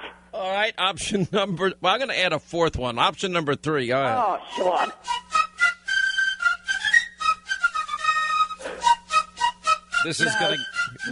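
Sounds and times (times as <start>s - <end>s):
speech: 0.4s - 5.2s, 10.0s - 11.0s
shrill piping melody like a recorder: 4.5s - 11.0s.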